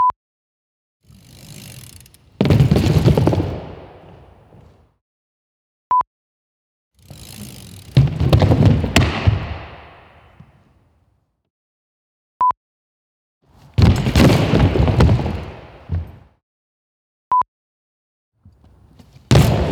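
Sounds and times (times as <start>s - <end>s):
indoor bike crashes: 1.1s - 4.7s, 7.1s - 10.4s, 13.6s - 16.2s, 18.8s - 19.7s.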